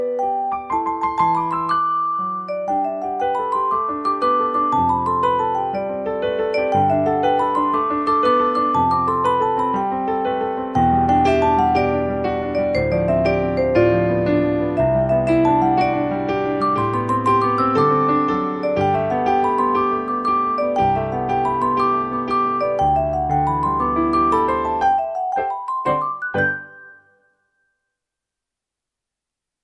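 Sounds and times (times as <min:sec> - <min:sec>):
accompaniment music: 0:00.0 - 0:27.0
playful flute melody: 0:00.0 - 0:27.3.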